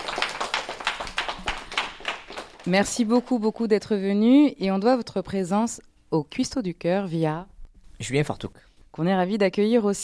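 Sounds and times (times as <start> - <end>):
audience clapping rhythmically for guests: 0.0 - 3.7
speech: 2.6 - 10.0.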